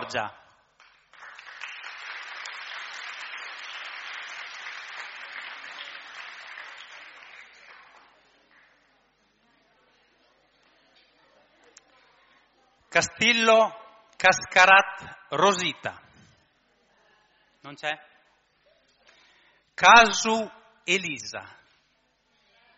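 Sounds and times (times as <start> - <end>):
speech: 0.1 - 0.4, 13.0 - 16.0, 17.6 - 18.1, 19.8 - 21.6
crowd clapping: 0.7 - 8.8.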